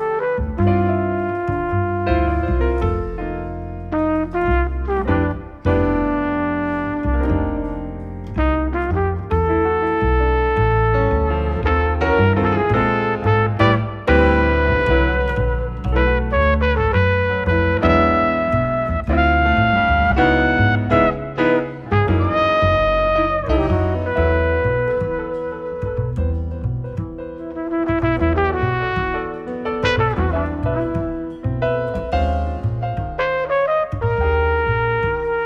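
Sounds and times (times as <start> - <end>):
play-along backing track without drums: 0.0 - 35.4.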